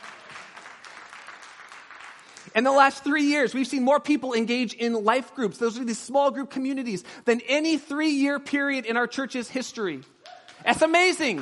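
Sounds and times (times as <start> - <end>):
audience clapping: 0.0 - 2.8, 10.0 - 11.4
speech: 2.5 - 10.1, 10.7 - 11.4.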